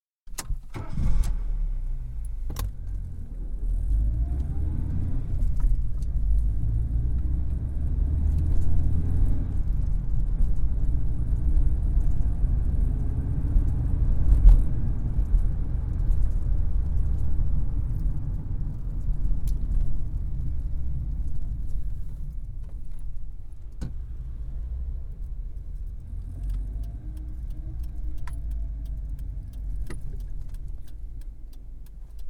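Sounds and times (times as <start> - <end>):
Vauxhall Carlton 1.8 litre saloon engine starting, running and switching off, heard from interior: 1.6 - 32.2.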